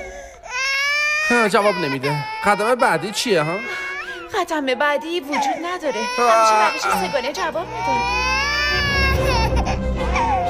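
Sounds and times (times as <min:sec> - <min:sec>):
baby crying loudly: 0:00.0 - 0:10.4
speech: 0:01.4 - 0:08.2.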